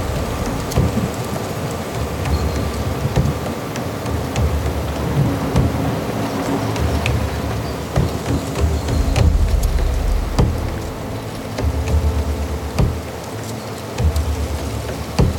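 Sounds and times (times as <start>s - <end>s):
wind on the Hochgern in Chiemgau: 0.0s - 15.3s.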